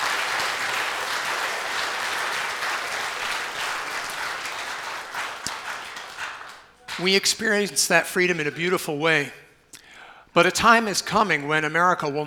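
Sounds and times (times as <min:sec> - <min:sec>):
audience round of applause: 0:00.0 - 0:07.0
speech: 0:07.0 - 0:09.4, 0:10.4 - 0:12.2.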